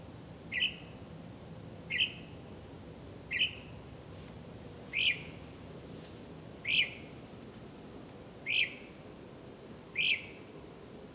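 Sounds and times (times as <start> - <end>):
bird chirps: 0.5 - 1.0, 1.9 - 2.4, 3.3 - 3.8, 4.9 - 5.4, 6.6 - 7.2, 8.4 - 9.0, 10.0 - 10.5.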